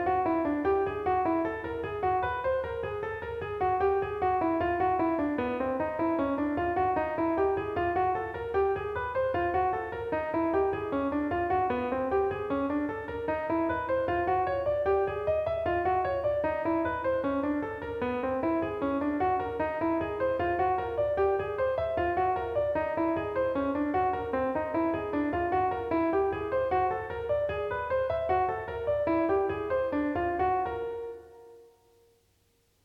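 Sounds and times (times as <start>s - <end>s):
jazz piano with whole tone scale embellishment: 0.0s - 32.8s.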